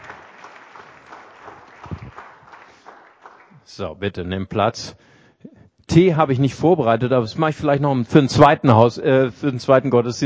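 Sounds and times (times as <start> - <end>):
crowd applauding: 0.0 - 3.8
speech: 3.7 - 5.1, 5.9 - 10.2.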